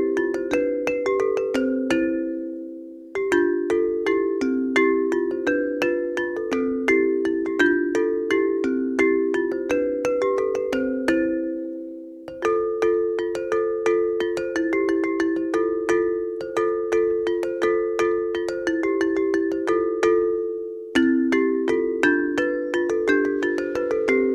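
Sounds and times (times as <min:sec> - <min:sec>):
small bells playing a mazurka in Bergamo: 0:00.0 - 0:24.3.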